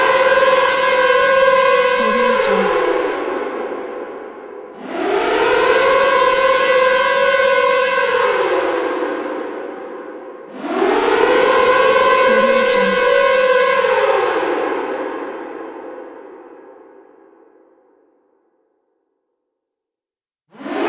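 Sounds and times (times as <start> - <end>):
air raid siren: 0.0 - 3.9, 4.8 - 9.8, 10.5 - 15.5, 20.6 - 20.8.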